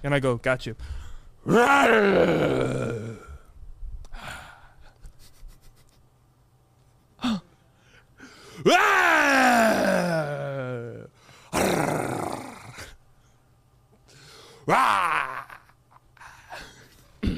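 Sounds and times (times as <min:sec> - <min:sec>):
low steady hum: 0:00.0 - 0:17.3
man imitating a lion's roar: 0:01.4 - 0:03.4, 0:08.7 - 0:13.0, 0:14.7 - 0:15.7.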